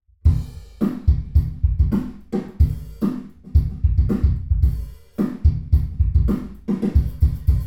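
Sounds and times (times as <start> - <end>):
drums recorded binaurally: 0.2 - 7.6.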